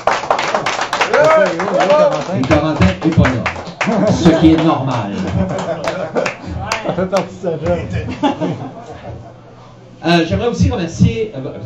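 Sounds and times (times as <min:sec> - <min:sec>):
audience applause: 0:00.0 - 0:07.3
speech: 0:01.3 - 0:05.7, 0:07.0 - 0:08.8, 0:10.0 - 0:11.6
laughter: 0:03.8 - 0:09.6.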